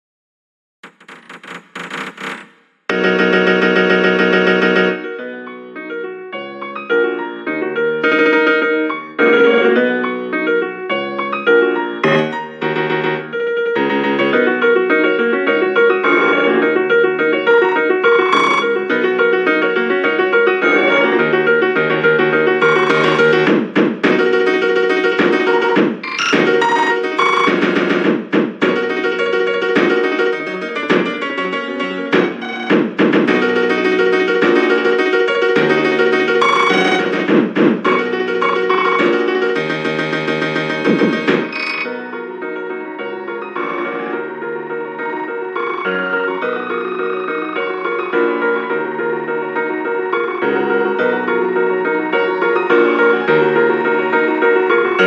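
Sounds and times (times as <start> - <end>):
piano: 0.8 - 55.0.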